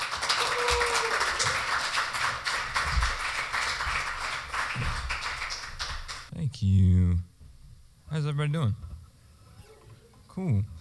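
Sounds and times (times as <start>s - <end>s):
audience round of applause: 0.0s - 6.3s
speech: 6.6s - 7.3s, 8.1s - 8.9s, 10.4s - 10.7s.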